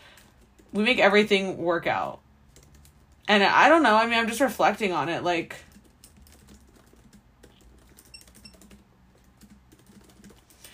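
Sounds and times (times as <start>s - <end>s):
typing notes on a computer keyboard: 0.1s - 1.0s, 2.5s - 3.3s, 5.6s - 10.7s
speech: 0.7s - 2.2s, 3.3s - 5.7s.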